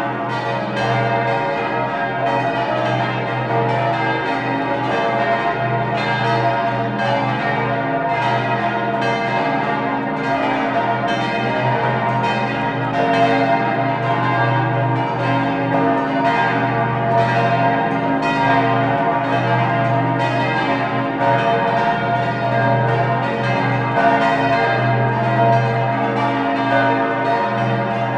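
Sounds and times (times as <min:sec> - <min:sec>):
collegiate church bells ringing in full peal: 0:00.0 - 0:28.1.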